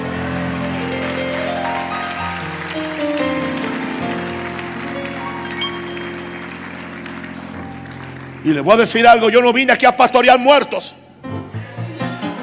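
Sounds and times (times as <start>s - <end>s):
audience applause: 0.0s - 9.4s
sustained keyboard chords: 0.0s - 12.4s
speech: 8.4s - 11.0s.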